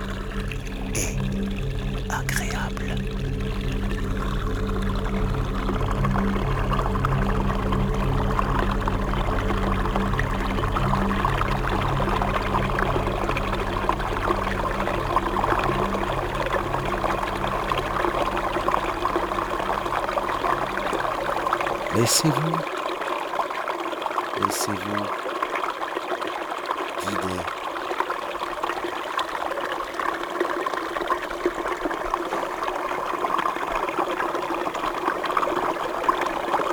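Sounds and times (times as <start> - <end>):
continuous low droning hum: 0.0 - 21.9
bubbling water: 0.0 - 36.7
speech: 2.1 - 3.1, 22.0 - 22.8, 24.6 - 25.2.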